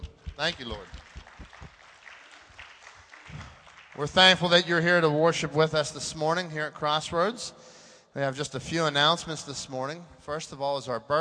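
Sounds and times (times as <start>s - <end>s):
audience clapping: 0.0s - 4.8s
speech: 0.4s - 1.0s, 4.0s - 11.1s.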